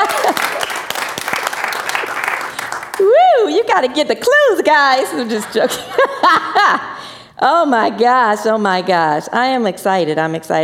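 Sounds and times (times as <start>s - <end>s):
audience applause: 0.0s - 3.2s
speech: 3.6s - 10.6s.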